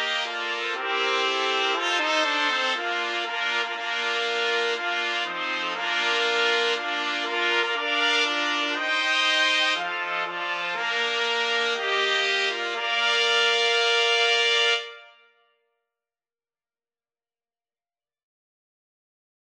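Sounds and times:
trumpet quartet playing a wedding march: 0.0 - 15.2.

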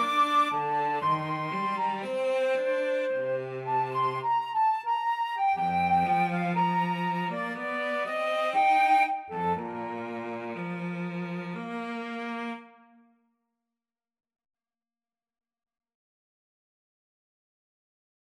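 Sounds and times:
flute: 0.0 - 12.8
cello: 0.0 - 13.0.

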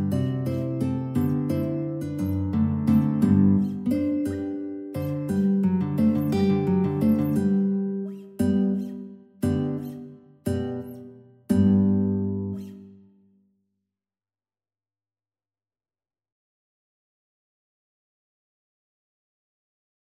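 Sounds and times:
guitar duet: 0.0 - 13.0.

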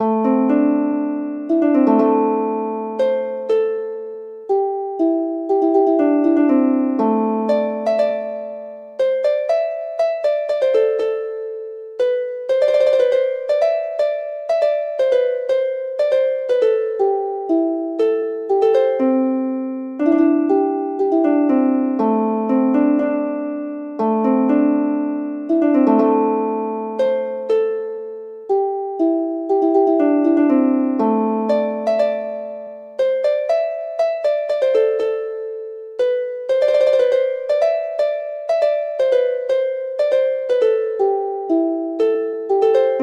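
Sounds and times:
harp: 0.0 - 43.0.

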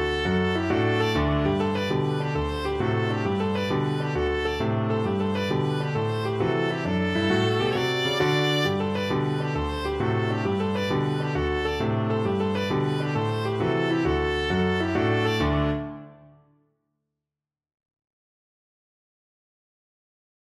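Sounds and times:
viola playing a kolo dance tune: 0.0 - 16.2.

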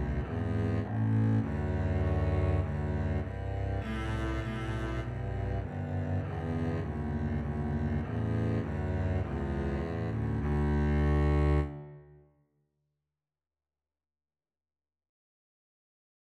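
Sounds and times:
double bass duet: 0.0 - 12.0.

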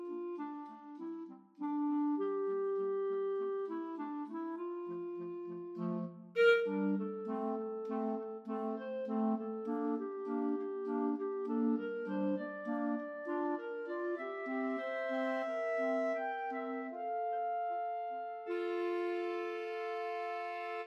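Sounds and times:
clarinet trio: 0.0 - 20.8.

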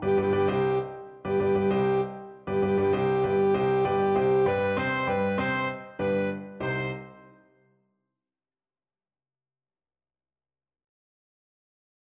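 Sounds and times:
alto saxophone: 0.0 - 7.4.

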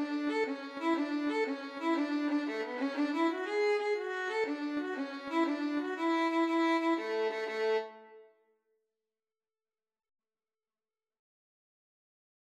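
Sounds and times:
violin duet playing an Irish jig medley: 0.0 - 8.1.

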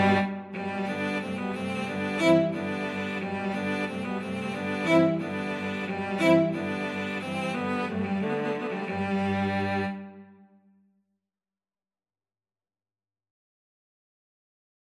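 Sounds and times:
cello quartet playing a Baroque piece: 0.0 - 10.3.

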